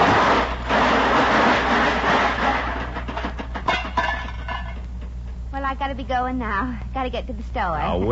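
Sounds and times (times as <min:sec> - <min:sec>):
car crashing into a pole: 0:00.0 - 0:04.7
speech: 0:05.9 - 0:08.1.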